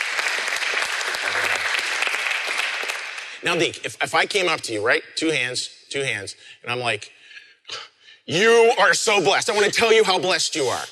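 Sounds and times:
crowd applauding: 0:00.0 - 0:03.4
speech: 0:03.4 - 0:10.9.

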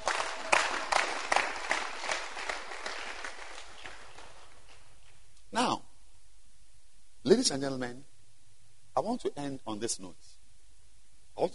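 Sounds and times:
people clapping: 0:00.0 - 0:05.3
speech: 0:07.3 - 0:08.1, 0:09.0 - 0:10.4, 0:11.4 - 0:11.5.

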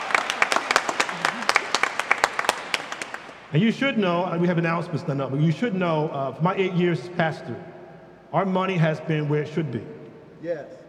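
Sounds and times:
audience applause: 0:00.0 - 0:03.5
speech: 0:03.5 - 0:07.7, 0:08.3 - 0:10.8.

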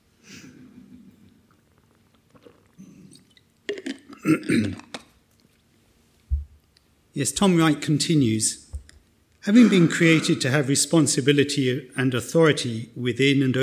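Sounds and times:
person drinking water: 0:01.2 - 0:05.1
speech: 0:04.2 - 0:04.9, 0:07.2 - 0:08.6, 0:09.4 - 0:13.6.

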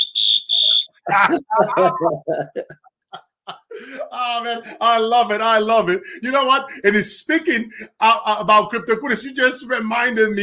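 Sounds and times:
Brazilian whistle sound effect: 0:00.0 - 0:01.1
speech: 0:01.1 - 0:03.2, 0:03.8 - 0:10.4
laughter: 0:01.1 - 0:04.2.

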